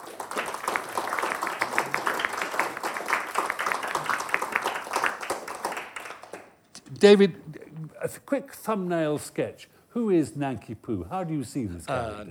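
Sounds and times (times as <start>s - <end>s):
audience applause welcoming an opera singer and pianist at an opera talk: 0.0s - 6.5s
speech: 7.0s - 12.2s.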